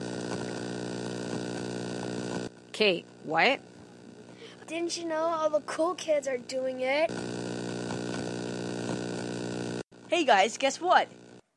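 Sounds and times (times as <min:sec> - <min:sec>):
radio static: 0:00.0 - 0:04.3, 0:07.0 - 0:09.8
speech: 0:02.8 - 0:03.7, 0:04.7 - 0:07.3, 0:10.1 - 0:11.2.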